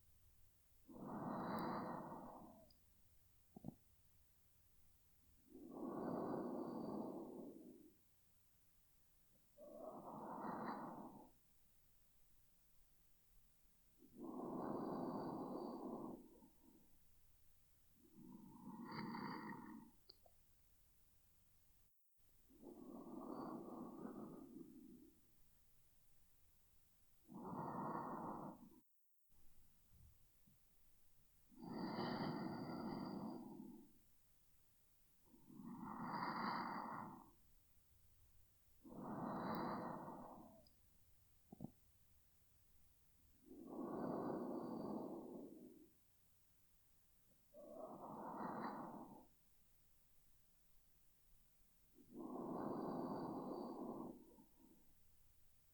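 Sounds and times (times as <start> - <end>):
person breathing in sleep: 0.8 - 2.8, 5.4 - 8.1, 9.5 - 11.5, 14.0 - 17.0, 18.0 - 20.3, 22.5 - 25.4, 27.2 - 28.8, 31.5 - 34.1, 35.1 - 37.5, 38.7 - 40.8, 43.3 - 46.2, 47.3 - 49.5, 51.7 - 55.0.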